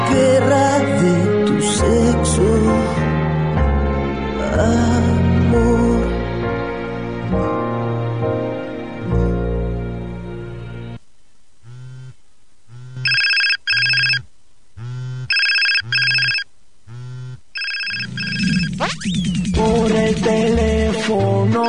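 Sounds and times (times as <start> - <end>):
music: 0.0 - 11.0, 19.4 - 21.6
telephone ringing with an incoming call on a phone panel: 12.8 - 14.2, 14.8 - 18.8.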